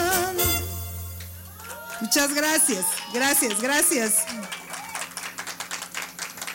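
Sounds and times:
audience applause: 0:01.3 - 0:06.5
speech: 0:02.0 - 0:04.6.

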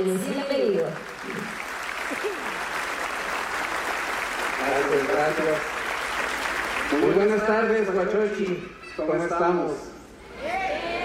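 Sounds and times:
audience applause: 0:00.7 - 0:08.0
speech: 0:04.9 - 0:05.8, 0:06.9 - 0:10.6.

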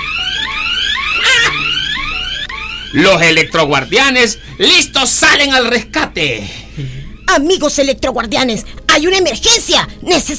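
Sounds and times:
fire alarm wailing: 0:00.0 - 0:05.9
speech: 0:02.9 - 0:10.3.

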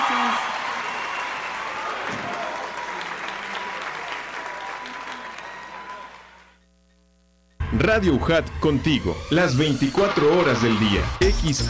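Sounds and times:
audience applause: 0:00.0 - 0:06.5
speech: 0:07.8 - 0:11.6.

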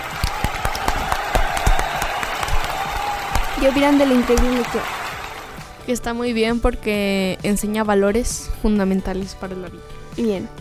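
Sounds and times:
applause: 0:00.0 - 0:05.8
speech: 0:03.6 - 0:05.0, 0:05.8 - 0:10.5.

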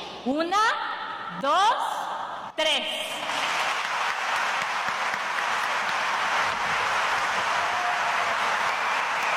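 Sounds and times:
speech: 0:00.2 - 0:02.0, 0:02.6 - 0:03.1
loud sustained audience applause: 0:03.2 - 0:09.3.

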